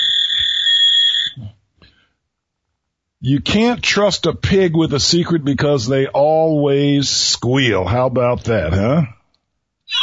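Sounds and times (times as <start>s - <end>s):
fax machine noise: 0.0s - 1.4s
speech: 3.2s - 9.2s.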